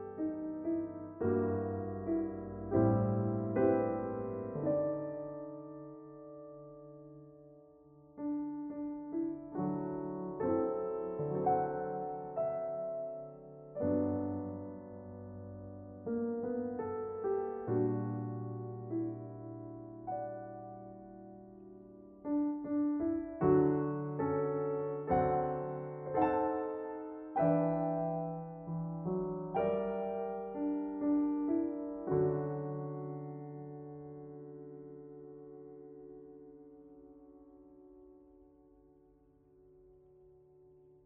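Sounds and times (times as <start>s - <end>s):
jazz bar style piano sketch: 0.0s - 41.0s.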